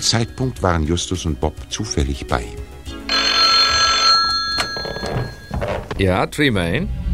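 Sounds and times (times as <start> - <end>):
speech: 0.0 - 2.7, 6.0 - 7.0
telephone bell ringing at home: 3.1 - 5.8.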